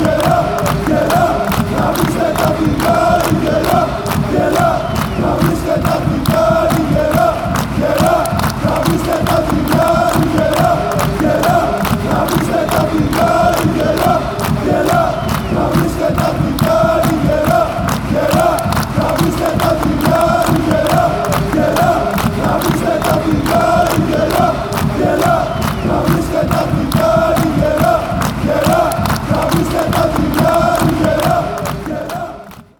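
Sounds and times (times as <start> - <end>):
chant: 0.0 - 32.7.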